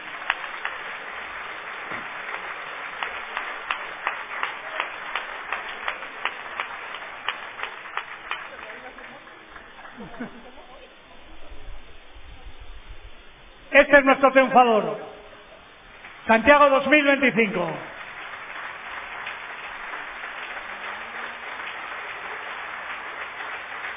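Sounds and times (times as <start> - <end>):
audience applause: 0.0 - 11.5, 15.5 - 23.9
laughter: 8.5 - 11.4
speech: 13.9 - 15.1, 16.3 - 17.9.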